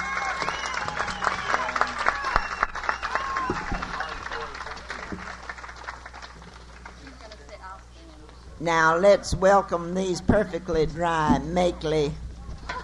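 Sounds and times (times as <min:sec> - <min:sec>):
applause for a female performer: 0:00.0 - 0:07.6
speech: 0:08.6 - 0:12.2.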